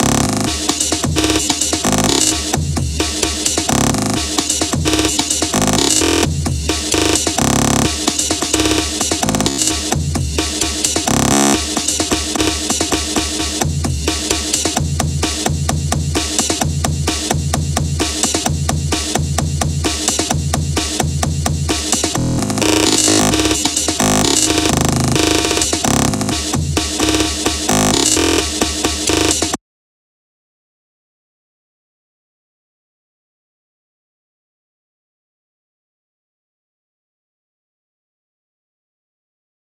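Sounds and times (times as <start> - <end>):
breakbeat: 0.0 - 29.6.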